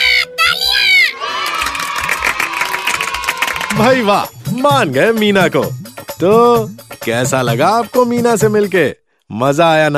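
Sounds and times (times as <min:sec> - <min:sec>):
class of children cheering: 0:00.0 - 0:04.2
class of children clapping: 0:01.3 - 0:04.2
speech: 0:03.8 - 0:09.9.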